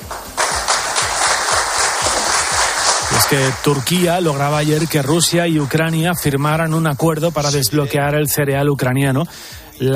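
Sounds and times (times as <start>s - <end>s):
applause: 0.0s - 6.9s
speech: 3.3s - 9.9s.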